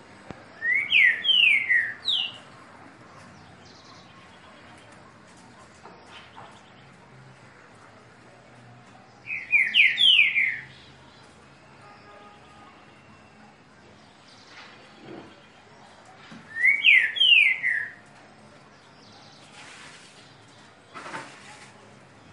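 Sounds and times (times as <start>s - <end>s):
green-winged saltator singing downslurred whistles: 0.6s - 2.4s, 9.3s - 10.9s, 16.5s - 18.0s.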